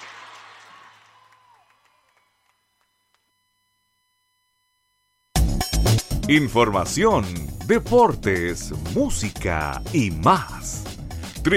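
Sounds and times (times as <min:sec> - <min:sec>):
audience applause: 0:00.0 - 0:02.6
speech: 0:06.3 - 0:11.5.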